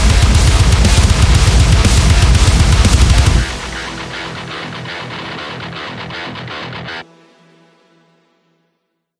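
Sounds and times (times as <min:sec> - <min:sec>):
heavy metal music: 0:00.0 - 0:07.3.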